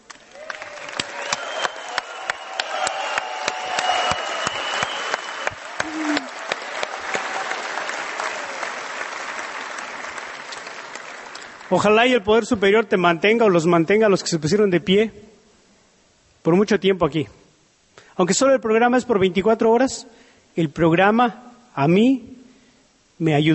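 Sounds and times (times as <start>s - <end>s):
meeting audience applause: 0.0s - 12.0s
speech: 11.7s - 15.2s, 16.4s - 17.4s, 18.2s - 22.4s, 23.2s - 23.5s.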